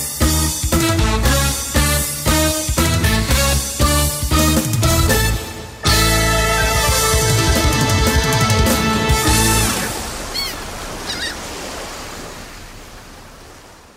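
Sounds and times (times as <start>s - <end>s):
children's music: 0.0s - 10.0s.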